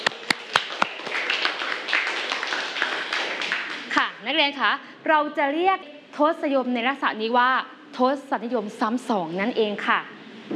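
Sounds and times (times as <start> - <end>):
classroom clapping: 0.0 - 4.1
speech: 4.3 - 10.5.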